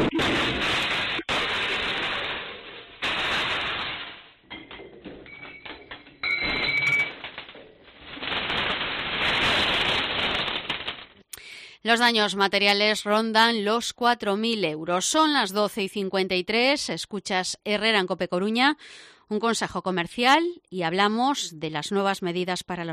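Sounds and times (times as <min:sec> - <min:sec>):
security camera audio of break-in robbery: 0:00.0 - 0:11.2
speech: 0:11.9 - 0:22.9.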